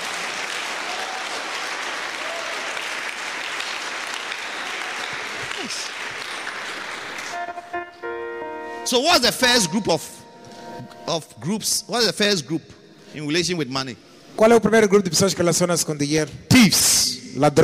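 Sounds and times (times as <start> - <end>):
audience clapping: 0.0 - 7.8
speech: 5.7 - 6.0, 8.9 - 10.2, 11.1 - 17.6.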